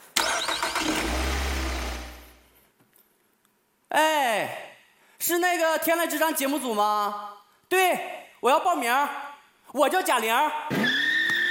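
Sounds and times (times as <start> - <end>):
car engine starting and driving off: 0.1 - 2.4
speech: 3.9 - 4.6, 5.3 - 10.8.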